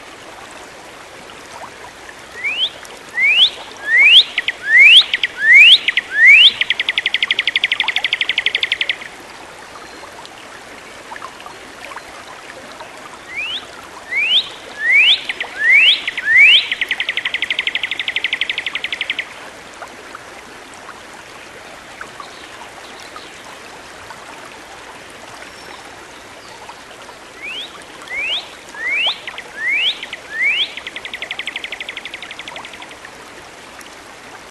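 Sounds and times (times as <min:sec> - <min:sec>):
bird song with rising whistles and dry trill: 0:02.4 - 0:09.0, 0:13.3 - 0:19.3, 0:27.4 - 0:32.8.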